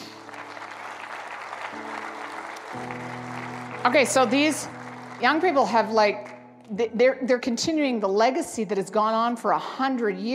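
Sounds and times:
audience clapping: 0.0 - 6.0
speech: 2.8 - 3.0, 3.8 - 10.3.

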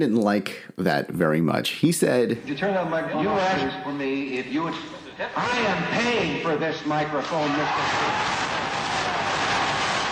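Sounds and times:
speech: 0.0 - 8.6
crowd cheering: 6.9 - 10.1.

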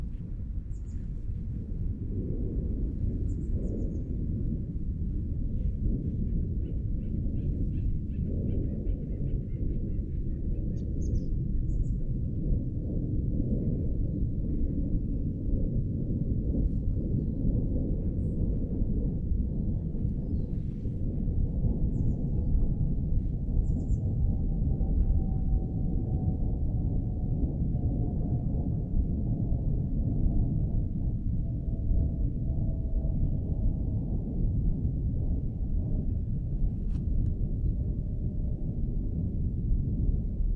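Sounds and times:
deep wind-like rumble at Tilden Regional Park in Orinda, California: 0.0 - 40.5.

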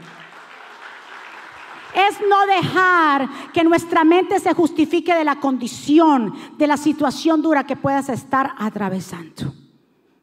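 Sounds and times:
crowd clapping: 0.0 - 2.5
speech: 2.0 - 9.6.

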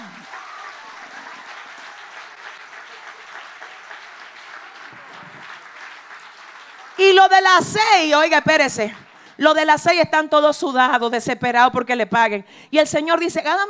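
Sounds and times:
audience applause: 0.0 - 7.5
speech: 7.0 - 13.6.

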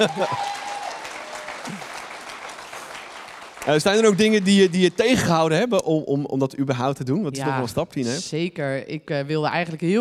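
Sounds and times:
speech: 0.0 - 0.6, 3.6 - 9.9
applause: 0.0 - 5.7.

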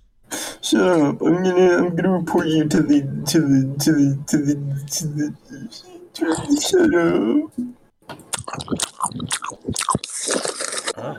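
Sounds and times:
speech: 0.7 - 11.1
crunchy chewing against the microphone: 8.3 - 11.0.

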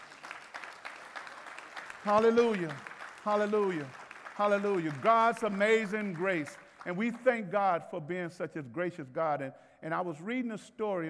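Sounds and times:
crowd applauding: 0.0 - 7.5
speech: 2.0 - 11.0.

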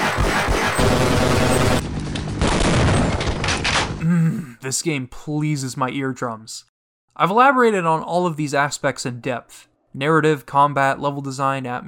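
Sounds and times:
gunfire from weapons in the video game Half-Life: 0.0 - 4.0
speech: 4.7 - 11.8.

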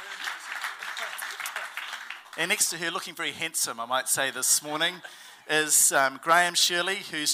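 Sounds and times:
room full of people clapping: 0.0 - 3.1
speech: 2.4 - 7.3.

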